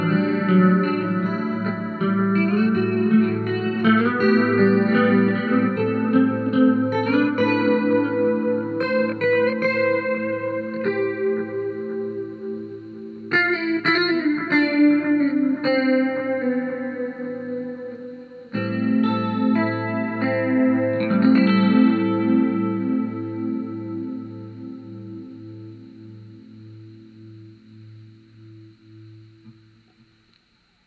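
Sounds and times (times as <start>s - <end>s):
guitar with heavy chorus effect, delay and reverb: 0.0s - 30.8s.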